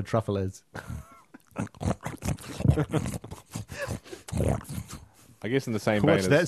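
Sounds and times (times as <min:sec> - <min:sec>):
speech: 0:00.0 - 0:06.4
dwarf pig grunting: 0:01.5 - 0:05.1.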